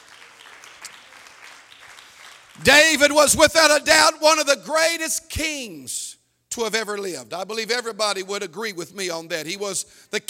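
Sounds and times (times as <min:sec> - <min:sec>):
church congregation clapping hands: 0:00.0 - 0:03.7
speech: 0:02.6 - 0:10.2.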